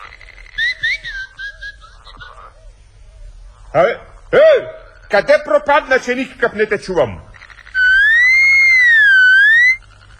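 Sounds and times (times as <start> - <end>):
blackbird whistling: 0.0 - 2.6, 7.7 - 9.8
speech: 3.7 - 7.3.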